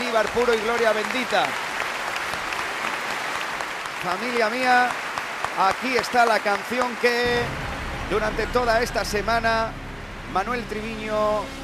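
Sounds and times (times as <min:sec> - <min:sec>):
audience applause: 0:00.0 - 0:08.9
speech: 0:00.1 - 0:01.6, 0:04.0 - 0:05.0, 0:05.6 - 0:11.6.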